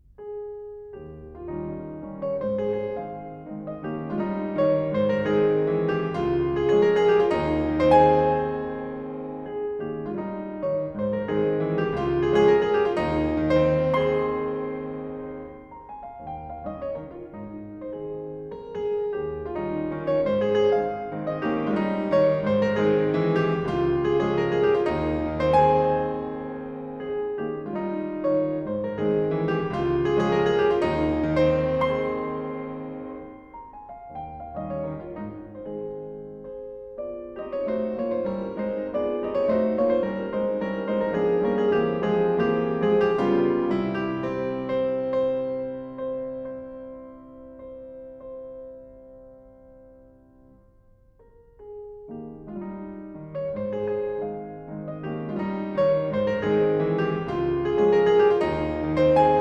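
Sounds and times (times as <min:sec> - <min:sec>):
piano mazurka in A flat: 0:00.0 - 0:59.3.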